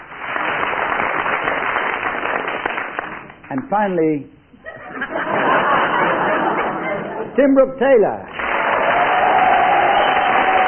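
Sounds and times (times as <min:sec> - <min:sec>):
studio audience applause: 0:00.0 - 0:03.4, 0:08.3 - 0:10.6
speech: 0:03.5 - 0:04.4, 0:07.4 - 0:08.3
laughter: 0:04.6 - 0:07.4.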